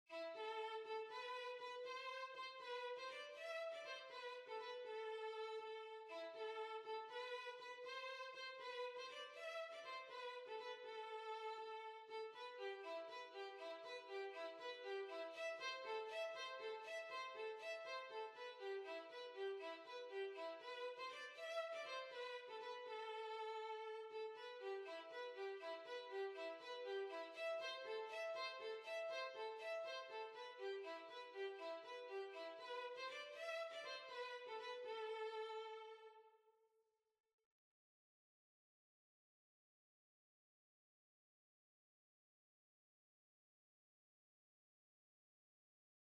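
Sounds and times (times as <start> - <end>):
violin: 0.0 - 36.4.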